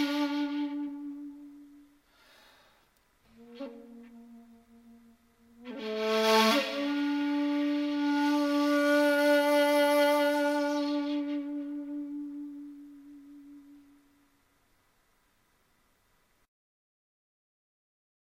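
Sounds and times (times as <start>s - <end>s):
shakuhachi music: 0.0s - 2.0s, 3.3s - 14.1s.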